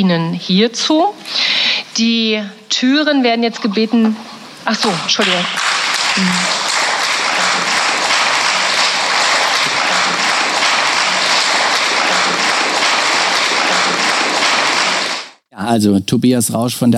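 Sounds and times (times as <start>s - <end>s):
speech: 0.0s - 6.6s, 15.7s - 16.9s
applause in a parliament chamber: 4.8s - 15.4s.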